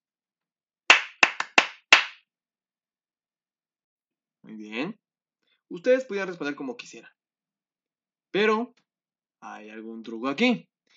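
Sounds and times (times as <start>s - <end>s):
rhythmic hand claps: 0.9s - 2.2s
speech: 4.4s - 5.0s, 5.7s - 7.2s, 8.3s - 8.8s, 9.4s - 10.7s.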